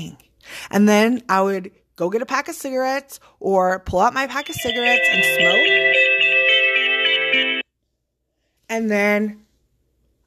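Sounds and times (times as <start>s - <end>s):
speech: 0.0s - 6.2s, 8.7s - 9.4s
phone ringing: 4.3s - 7.6s.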